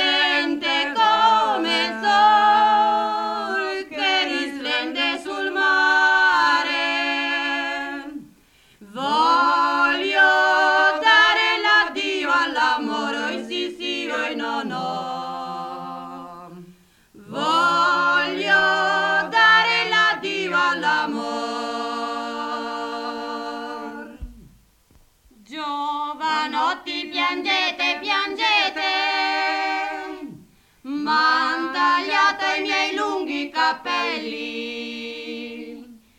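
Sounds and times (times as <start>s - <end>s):
choir singing in Brianza: 0.0s - 24.4s, 25.5s - 36.0s.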